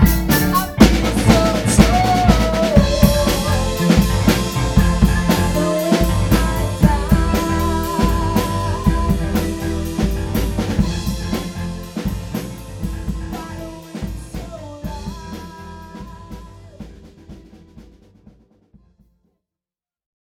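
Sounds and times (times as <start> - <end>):
techno music: 0.0 - 15.6.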